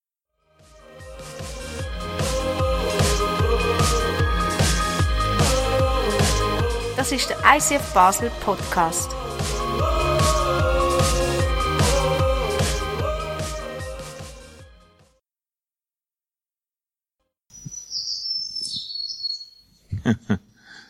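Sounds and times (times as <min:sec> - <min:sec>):
music: 0:00.4 - 0:15.2
speech: 0:07.1 - 0:09.2
forest birdsong: 0:17.5 - 0:19.8.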